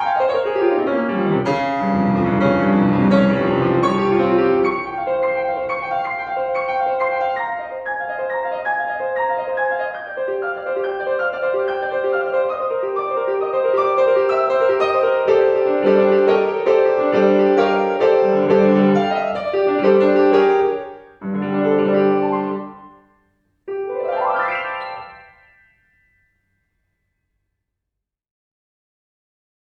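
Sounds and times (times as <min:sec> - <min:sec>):
calypso music vivace: 0:00.2 - 0:09.2, 0:10.6 - 0:23.0, 0:23.7 - 0:25.7.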